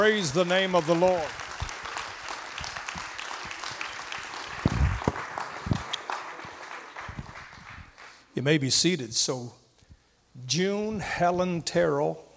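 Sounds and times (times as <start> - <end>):
speech: 0.0 - 1.4, 8.4 - 9.6, 10.4 - 12.3
audience applauding in praise: 0.0 - 8.3.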